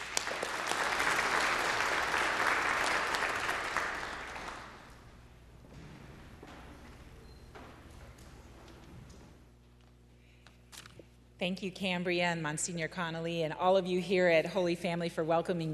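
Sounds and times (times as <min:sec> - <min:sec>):
audience applause: 0:00.0 - 0:05.1
speech: 0:11.4 - 0:15.7.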